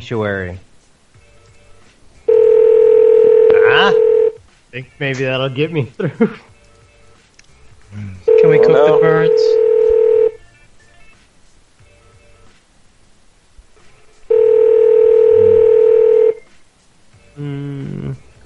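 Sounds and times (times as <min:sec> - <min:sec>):
speech: 0:00.0 - 0:00.7, 0:04.7 - 0:06.5, 0:07.9 - 0:09.7
telephone call dialing and ringing tones: 0:02.3 - 0:04.4, 0:08.3 - 0:10.4, 0:14.3 - 0:16.4.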